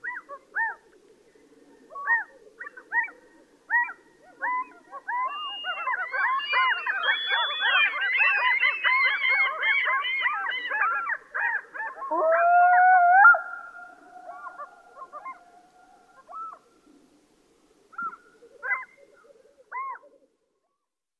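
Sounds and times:
black-throated loon calling with echo: 0:01.9 - 0:16.7, 0:17.9 - 0:20.1.

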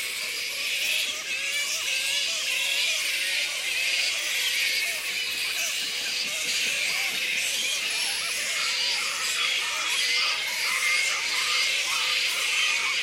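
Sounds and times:
black flying fox Pteropus alecto colony squeaking: 0:00.6 - 0:13.0.

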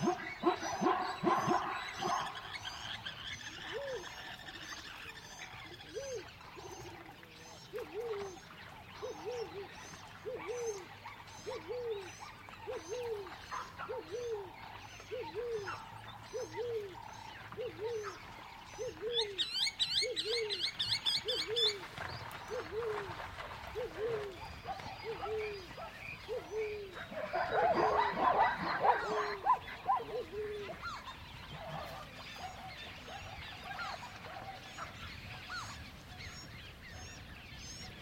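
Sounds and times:
savannah dogs: 0:00.0 - 0:03.0, 0:05.9 - 0:19.6, 0:20.3 - 0:35.8
zebras galloping: 0:20.7 - 0:26.4.

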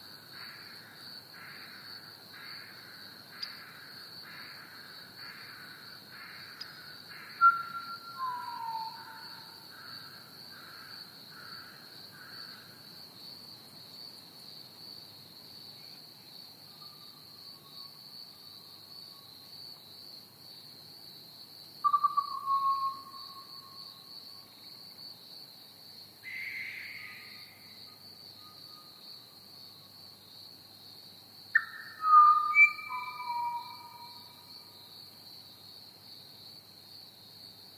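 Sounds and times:
crickets chirping: 0:00.0 - 0:37.7
pied butcherbird singing: 0:07.4 - 0:09.2, 0:21.9 - 0:23.1, 0:31.6 - 0:34.2.

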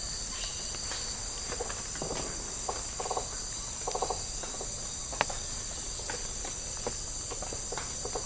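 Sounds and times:
rainforest insects chorusing with a high buzzing drone: 0:00.0 - 0:08.2.

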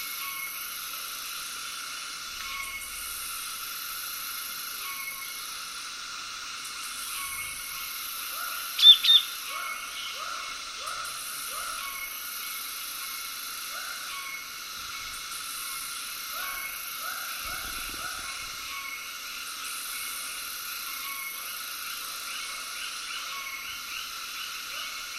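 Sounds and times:
frogs calling in short arched notes: 0:00.0 - 0:25.1.

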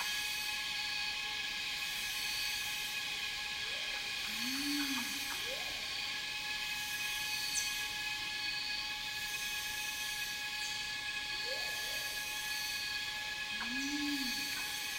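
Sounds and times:
cicadas droning in a rainforest: 0:00.0 - 0:14.9.

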